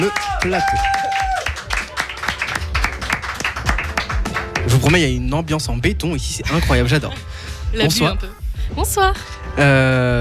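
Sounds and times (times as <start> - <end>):
speech: 0.0 - 1.0, 4.7 - 10.2
audience applause: 0.0 - 5.0.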